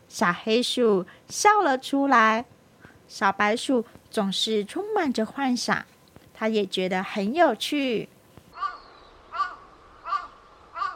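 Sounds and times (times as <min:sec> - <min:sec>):
speech: 0:00.2 - 0:02.5, 0:03.1 - 0:08.1
crow cawing: 0:08.5 - 0:10.9.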